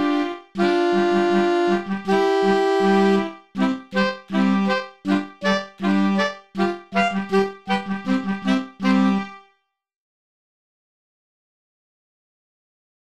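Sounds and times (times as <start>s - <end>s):
saxophone: 0.0s - 9.5s
clarinet: 0.0s - 9.6s.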